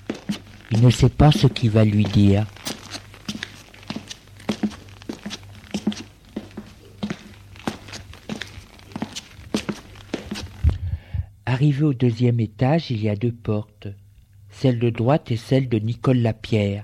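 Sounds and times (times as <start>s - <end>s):
footsteps climbing stairs: 0.0s - 10.7s
speech: 0.7s - 2.6s, 11.6s - 14.0s, 14.6s - 16.8s.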